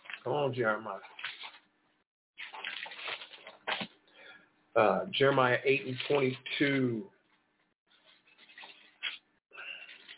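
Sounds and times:
speech: 0:00.2 - 0:01.2, 0:04.8 - 0:07.2
turning pages of a paper book: 0:01.0 - 0:01.7, 0:02.4 - 0:04.0, 0:05.8 - 0:06.4, 0:07.9 - 0:10.1.

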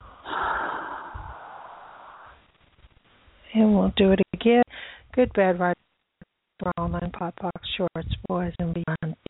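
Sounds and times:
deep breath during a guided breathing exercise: 0:00.0 - 0:02.5, 0:04.7 - 0:05.1
speech: 0:03.6 - 0:04.6, 0:05.2 - 0:05.8, 0:06.6 - 0:09.2.

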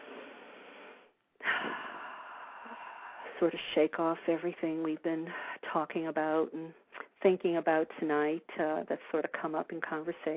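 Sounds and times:
person exhaling during a guided relaxation: 0:00.0 - 0:03.3
person inhaling deeply during a guided relaxation: 0:00.0 - 0:03.4
speech: 0:03.4 - 0:10.3.

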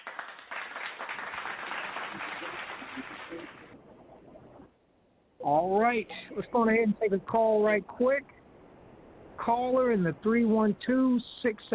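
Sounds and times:
hands clapping: 0:00.0 - 0:03.7
speech: 0:03.0 - 0:03.9, 0:05.4 - 0:08.3, 0:09.4 - 0:11.7.

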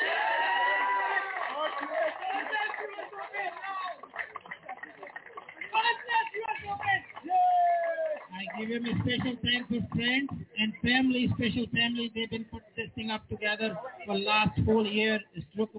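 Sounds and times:
crowd cheering: 0:00.0 - 0:09.3
people clapping: 0:00.0 - 0:11.1
speech: 0:08.8 - 0:15.7.

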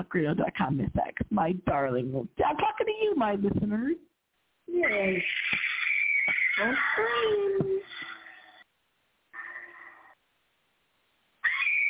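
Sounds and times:
speech: 0:00.0 - 0:04.1, 0:04.7 - 0:05.6, 0:06.6 - 0:07.9
high-pitched screaming: 0:04.9 - 0:08.6, 0:11.4 - 0:11.8.

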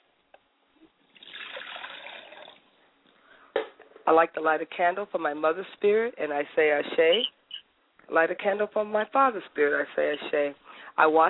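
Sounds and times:
liquid libation being poured: 0:01.0 - 0:02.8
speech: 0:04.1 - 0:07.4, 0:08.1 - 0:11.2.

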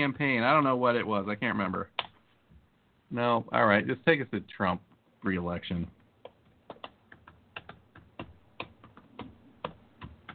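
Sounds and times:
speech: 0:00.0 - 0:02.0, 0:03.1 - 0:06.0
fast typing on a computer keyboard: 0:05.7 - 0:10.3.

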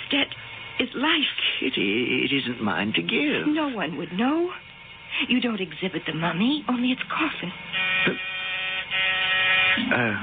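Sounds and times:
speech: 0:00.1 - 0:04.6, 0:05.2 - 0:08.3, 0:09.8 - 0:10.2
door buzzer: 0:07.7 - 0:10.2.

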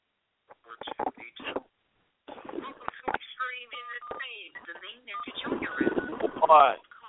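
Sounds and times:
scratching noise from a phone: 0:02.3 - 0:06.7.

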